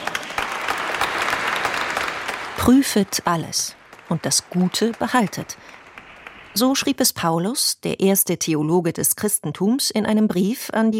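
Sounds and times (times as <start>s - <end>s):
congregation applauding during a church service: 0.0s - 7.0s
speech: 2.6s - 5.8s, 6.6s - 10.9s.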